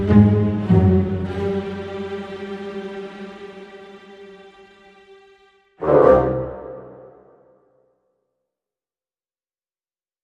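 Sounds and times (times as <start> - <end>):
strings: 0.0 - 7.4.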